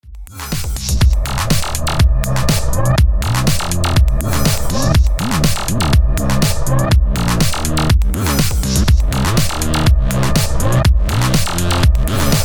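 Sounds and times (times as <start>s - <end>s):
Akai house music: 0.2s - 12.4s.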